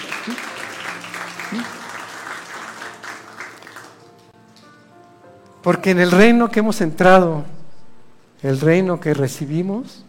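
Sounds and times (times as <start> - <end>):
audience applauding: 0.0 - 4.7
speech: 0.2 - 0.5, 1.5 - 1.8, 5.6 - 7.6, 8.4 - 10.0.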